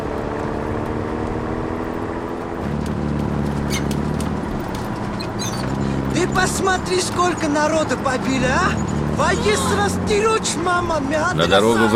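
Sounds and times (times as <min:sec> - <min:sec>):
light armoured car engine driving past a fortress wall: 0:00.0 - 0:11.9
speech: 0:06.4 - 0:11.9.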